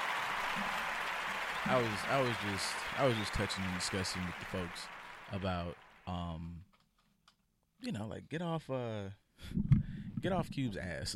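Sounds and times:
audience applause: 0.0s - 6.2s
speech: 1.7s - 6.7s, 7.8s - 11.1s.

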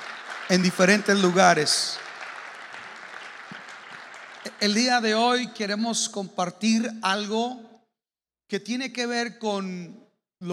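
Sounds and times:
audience applause: 0.0s - 5.8s
speech: 0.5s - 2.0s, 4.6s - 7.7s, 8.5s - 10.5s.

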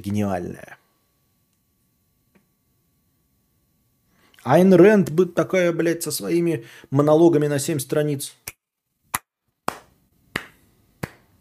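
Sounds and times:
speech: 0.0s - 0.8s, 4.4s - 8.6s
slow sarcastic hand claps: 8.5s - 11.3s.

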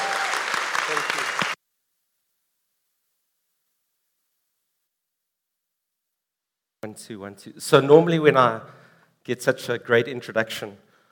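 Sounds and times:
audience cheering: 0.0s - 1.6s
speech: 7.0s - 10.8s.

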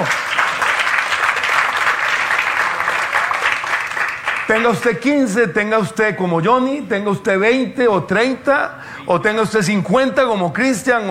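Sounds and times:
applause: 0.0s - 5.1s
speech: 4.5s - 11.1s.

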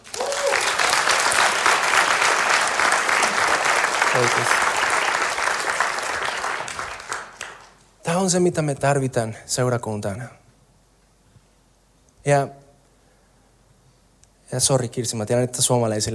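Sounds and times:
audience applause: 0.0s - 7.8s
speech: 4.2s - 4.6s, 8.1s - 10.4s, 12.2s - 12.6s, 14.5s - 16.1s.

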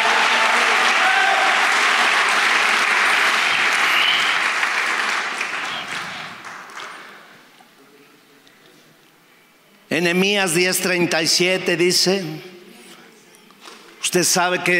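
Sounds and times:
audience applause: 0.0s - 7.4s
speech: 10.0s - 12.5s, 14.1s - 14.7s.

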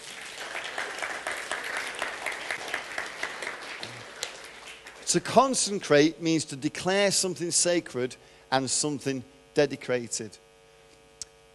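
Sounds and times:
crowd applauding: 0.0s - 5.8s
speech: 5.1s - 10.4s.

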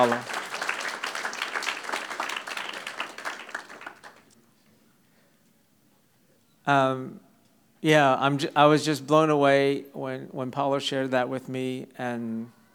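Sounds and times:
speech: 0.0s - 0.4s, 6.7s - 12.6s
audience applause: 0.0s - 4.3s.

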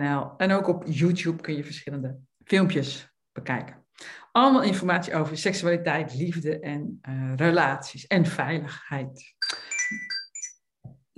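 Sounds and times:
speech: 0.0s - 10.1s
alarm clock ringing: 9.4s - 10.6s.

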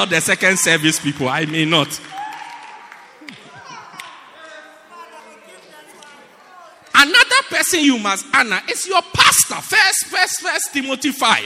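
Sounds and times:
speech: 0.0s - 2.2s, 7.7s - 11.4s
crowd hand claps: 1.0s - 4.3s.

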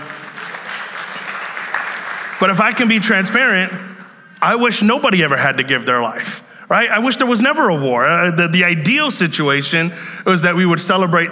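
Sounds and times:
audience clapping: 0.0s - 4.3s
speech: 2.4s - 11.3s.

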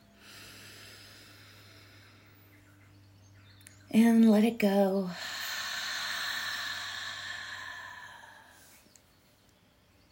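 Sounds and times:
slow deep breath in: 0.0s - 2.6s, 5.1s - 8.9s
low constant hum: 0.0s - 10.1s
speech: 3.9s - 5.3s.

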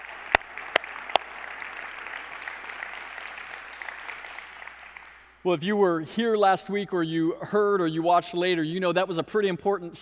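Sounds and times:
audience applause: 0.0s - 5.3s
speech: 5.4s - 10.0s.

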